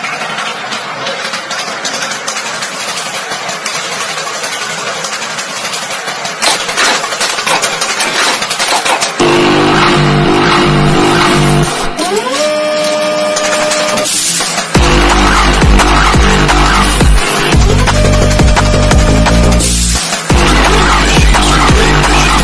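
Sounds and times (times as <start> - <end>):
factory beat: 0.2 - 12.1, 13.1 - 22.4.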